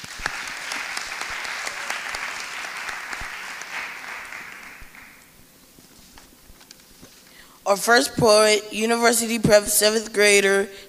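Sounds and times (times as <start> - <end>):
audience applause: 0.0 - 5.4
speech: 7.7 - 10.8.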